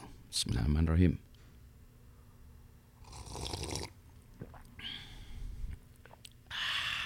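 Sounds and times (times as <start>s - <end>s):
speech: 0.3s - 1.3s
person sipping morning coffee: 3.0s - 4.7s
mouth and swallowing noises: 3.0s - 4.8s, 5.6s - 6.5s.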